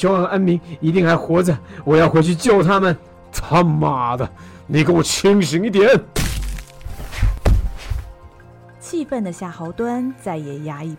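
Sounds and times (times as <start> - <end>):
speech: 0.0 - 6.3, 8.9 - 10.9
punch to the face: 6.2 - 8.0.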